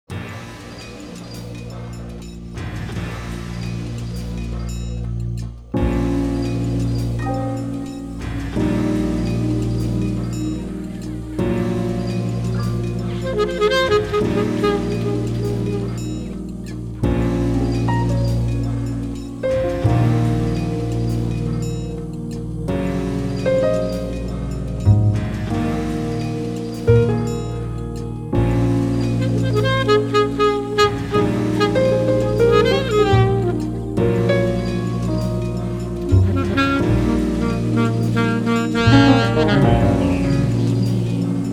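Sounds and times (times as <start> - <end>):
blues music: 0.1 - 41.5.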